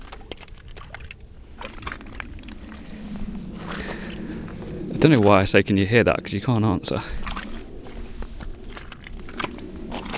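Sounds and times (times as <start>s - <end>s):
footsteps crunching across ice: 0.0s - 5.4s, 7.2s - 10.1s
wet squelchy muddy slush: 0.0s - 5.7s, 6.9s - 10.1s
speech: 5.0s - 7.2s.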